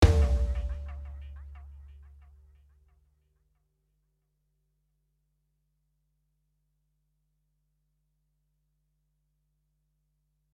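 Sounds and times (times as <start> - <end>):
rhythm: 0.0 - 2.2.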